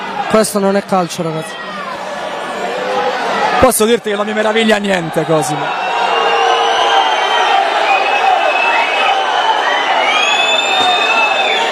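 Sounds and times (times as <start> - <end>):
stadium crowd roar: 0.0 - 11.7
speech: 0.3 - 1.8, 3.6 - 5.8
stadium crowd whistling in disapproval: 3.8 - 11.7.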